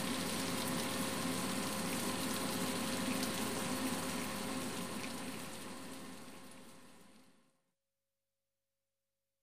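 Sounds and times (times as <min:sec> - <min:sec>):
bacon frying: 0:00.0 - 0:05.6.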